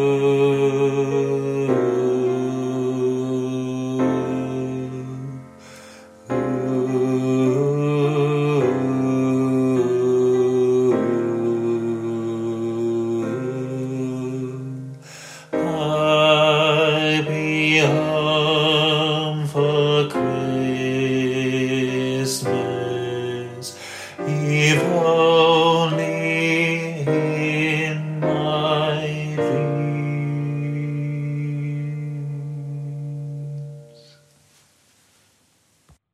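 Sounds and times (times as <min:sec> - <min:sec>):
christmas song: 0:00.0 - 0:35.8.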